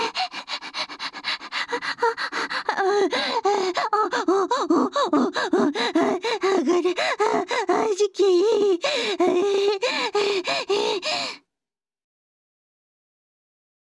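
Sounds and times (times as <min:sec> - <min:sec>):
person moaning: 0:01.7 - 0:11.3.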